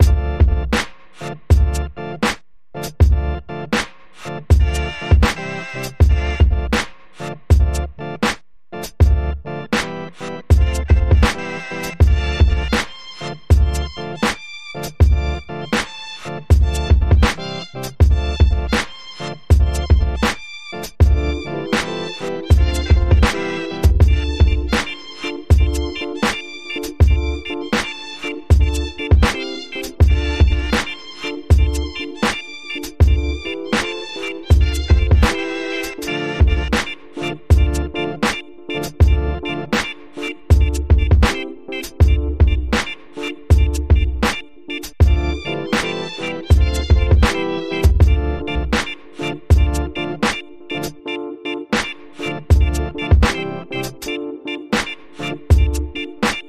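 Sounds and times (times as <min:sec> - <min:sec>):
electronica music: 0:00.0 - 0:56.4.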